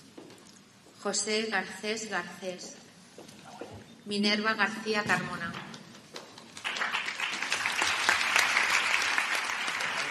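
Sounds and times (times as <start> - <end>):
speech: 1.0 - 2.8, 4.1 - 5.6
audience applause at diploma ceremony: 6.6 - 10.0.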